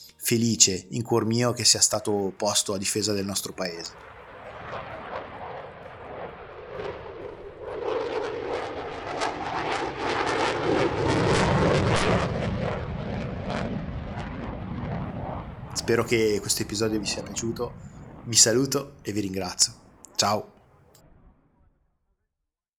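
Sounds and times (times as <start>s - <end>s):
speech: 0.3s - 4.2s, 15.9s - 20.6s
Eurofighter Typhoon jet fighter roaring past: 1.6s - 21.3s.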